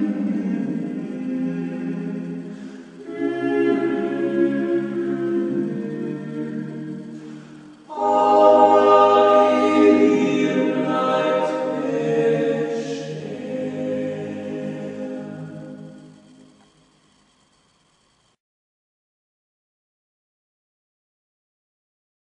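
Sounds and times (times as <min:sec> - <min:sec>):
Carinthian folk song: 0:00.0 - 0:16.7.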